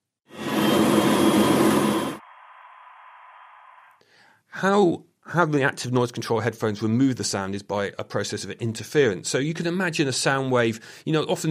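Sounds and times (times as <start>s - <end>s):
machinery noise: 0.3s - 2.2s
speech: 4.6s - 11.5s.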